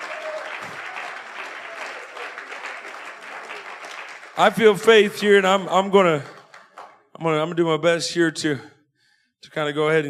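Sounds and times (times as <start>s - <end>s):
crowd of people clapping their hands: 0.0s - 7.1s
speech: 4.4s - 6.3s, 7.2s - 8.7s, 9.4s - 10.0s.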